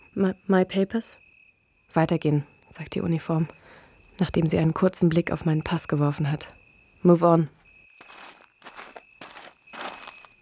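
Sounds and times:
speech: 0:00.2 - 0:01.2, 0:01.9 - 0:03.6, 0:04.2 - 0:08.2
footsteps walking and trotting along a street: 0:08.0 - 0:10.4.

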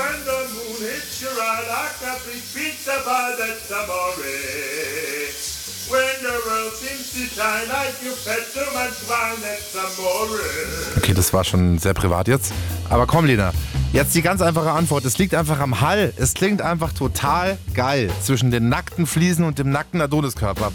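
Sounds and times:
man singing under running shower: 0:00.0 - 0:11.5
running shower: 0:00.0 - 0:11.6, 0:12.3 - 0:20.7
speech: 0:01.5 - 0:05.0, 0:05.9 - 0:20.7.

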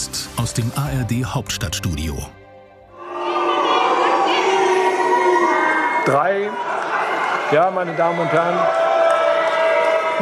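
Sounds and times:
speech: 0:00.4 - 0:02.4, 0:06.1 - 0:06.7, 0:07.5 - 0:08.8
crowd booing: 0:02.9 - 0:10.2.

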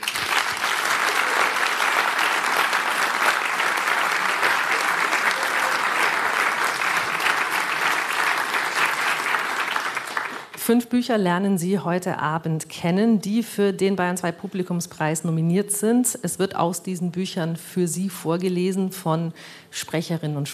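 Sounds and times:
audience applause: 0:00.0 - 0:10.6
speech: 0:10.7 - 0:20.5.

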